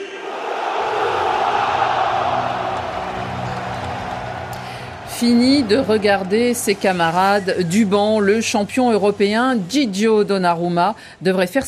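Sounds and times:
large audience applause mixed with crowd roar: 0.0 - 9.1
speech: 5.2 - 11.6.

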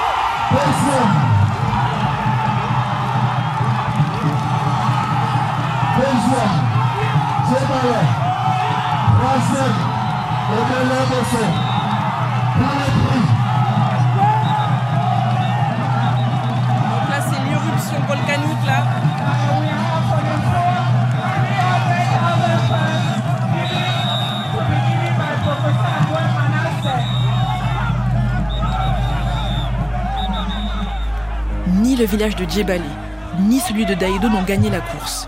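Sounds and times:
festival crowd hubbub: 0.2 - 35.2
speech: 0.5 - 1.3, 10.5 - 11.7, 32.0 - 35.2.

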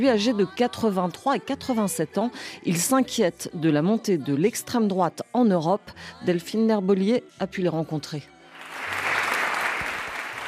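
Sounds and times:
speech: 0.0 - 8.3
crowd applause at an exhibition opening: 8.6 - 10.4.

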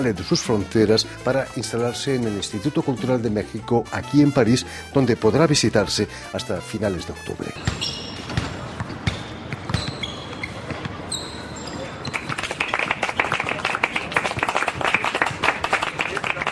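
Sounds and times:
speech: 0.0 - 8.5
crowd applause: 12.1 - 16.4
scattered claps: 12.1 - 16.4.

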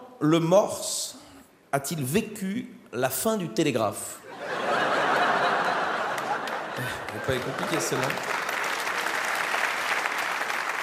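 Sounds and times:
speech: 0.2 - 4.2, 6.8 - 8.4
laughter: 4.3 - 8.4
audience applause at a live quiz event: 5.2 - 10.8.

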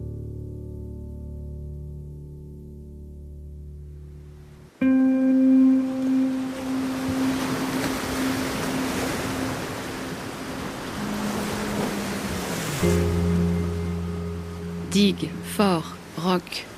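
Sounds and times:
ocean waves: 4.3 - 16.7
speech: 14.9 - 16.7.

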